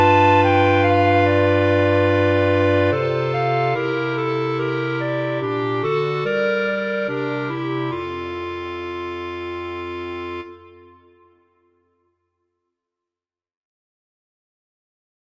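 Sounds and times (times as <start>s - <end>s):
clarinet quartet: 0.0s - 11.3s.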